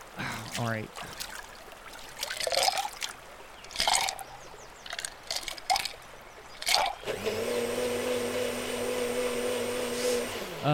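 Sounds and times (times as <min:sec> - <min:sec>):
liquid splashing and pouring: 0:00.3 - 0:07.0
speech: 0:00.6 - 0:01.3
blender mixing a margarita: 0:07.0 - 0:10.6.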